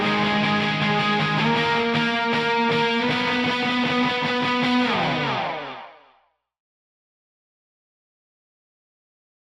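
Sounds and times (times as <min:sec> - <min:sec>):
bass guitar: 0:00.0 - 0:05.9.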